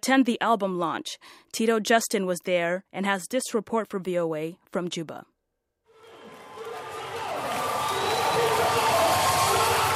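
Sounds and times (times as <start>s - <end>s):
speech: 0.0s - 5.3s
concert crowd chanting for peace at an album launch in Juba, South Sudan: 6.0s - 9.9s.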